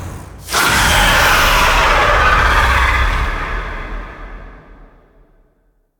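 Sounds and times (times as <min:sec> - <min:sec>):
vocals: 0:00.5 - 0:04.5.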